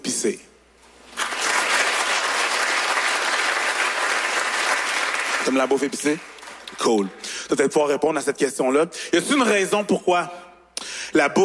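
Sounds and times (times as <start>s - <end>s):
speech: 0.2s - 0.6s, 5.4s - 10.4s, 11.1s - 11.4s
audience applauding: 1.1s - 7.1s.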